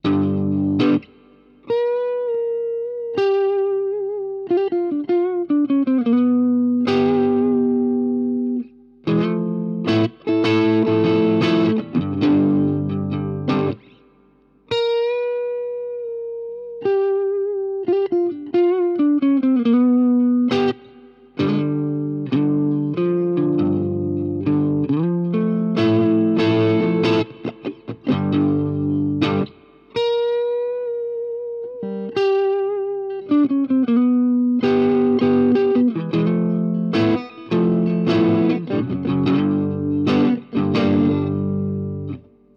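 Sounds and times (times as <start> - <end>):
Supro 64 Reverb amp, clean with a little reverb: 0.0 - 42.5.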